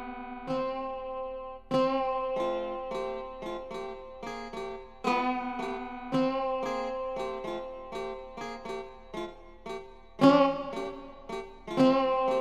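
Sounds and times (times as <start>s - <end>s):
koto: 0.0s - 12.4s.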